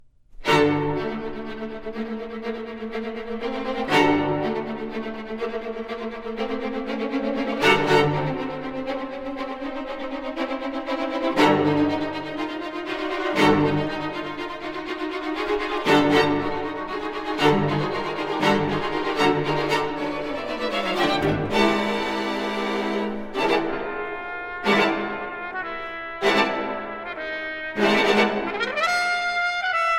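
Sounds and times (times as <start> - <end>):
trumpet and string orchestra concerto: 0.4 - 29.9.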